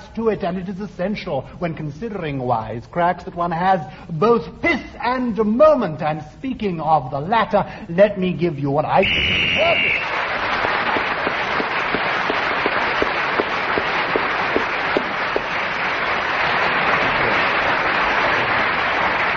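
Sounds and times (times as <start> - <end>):
speech: 0.2 - 10.2
thunderous round of applause: 9.5 - 19.3.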